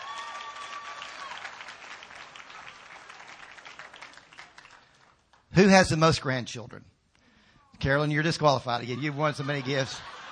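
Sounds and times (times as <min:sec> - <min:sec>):
audience applause: 0:00.0 - 0:05.4
speech: 0:05.6 - 0:07.0, 0:07.8 - 0:10.1
laughter: 0:08.7 - 0:10.2.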